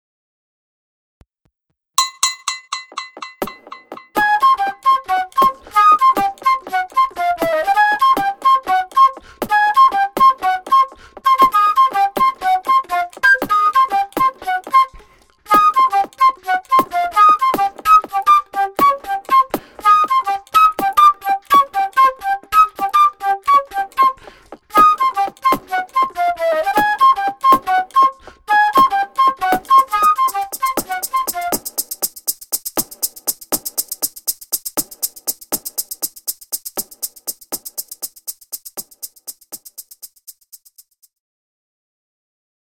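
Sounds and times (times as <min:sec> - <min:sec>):
lively flute melody: 0:04.2 - 0:32.3.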